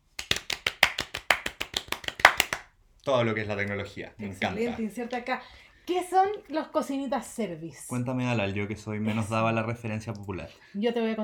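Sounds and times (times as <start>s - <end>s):
hand clapping: 0.0s - 2.7s
speech: 3.1s - 11.2s.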